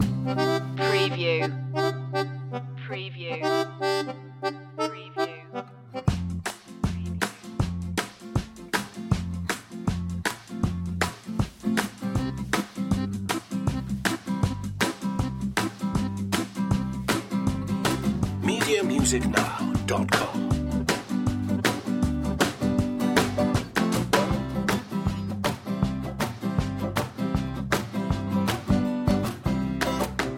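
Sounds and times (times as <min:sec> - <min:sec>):
zydeco music loop: 0:00.0 - 0:02.6, 0:03.3 - 0:30.3.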